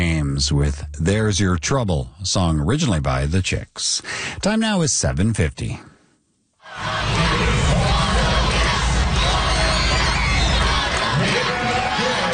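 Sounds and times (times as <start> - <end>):
speech: 0.4 - 5.9
school children cheering and shouting: 6.7 - 12.3.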